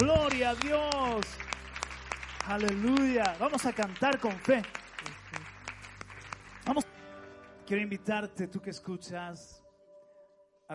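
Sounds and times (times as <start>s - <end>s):
speech: 0.0s - 1.6s, 2.4s - 5.2s, 6.7s - 6.9s, 7.7s - 9.6s
scattered audience handclaps: 0.0s - 6.9s.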